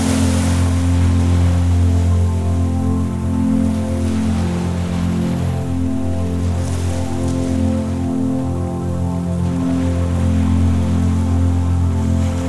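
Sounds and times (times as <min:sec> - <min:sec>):
ocean: 0:00.0 - 0:12.4
relaxing music: 0:00.0 - 0:12.4.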